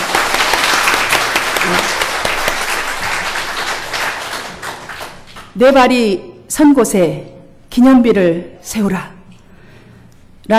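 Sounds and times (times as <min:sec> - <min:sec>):
audience applause: 0:00.0 - 0:05.5
speech: 0:05.6 - 0:09.2.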